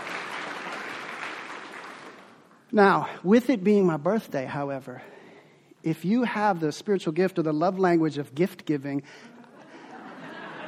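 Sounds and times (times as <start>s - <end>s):
church congregation applauding at Christ Our King: 0.0s - 2.7s
speech: 2.7s - 5.1s, 5.8s - 9.3s
laughter: 9.2s - 10.6s.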